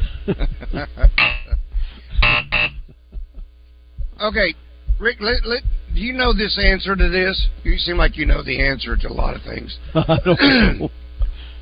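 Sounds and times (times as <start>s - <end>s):
laughter: 0.1s - 1.6s, 9.8s - 11.0s
speech: 0.2s - 1.4s, 4.2s - 11.0s
harsh flat buzzer: 1.2s - 1.6s, 2.2s - 2.9s.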